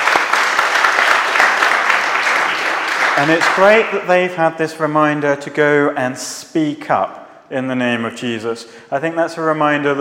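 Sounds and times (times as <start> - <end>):
audience round of applause: 0.0 - 3.9
speech: 3.2 - 10.0.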